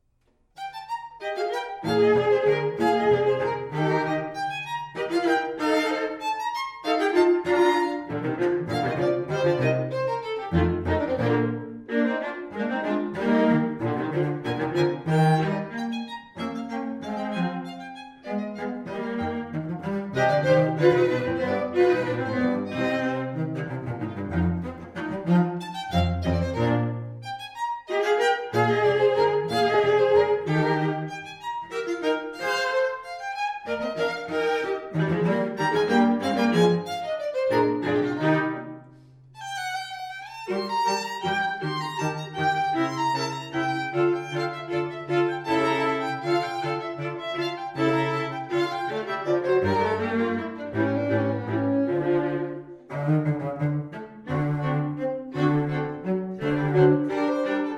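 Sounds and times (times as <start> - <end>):
musical trio: 0.5 - 57.7.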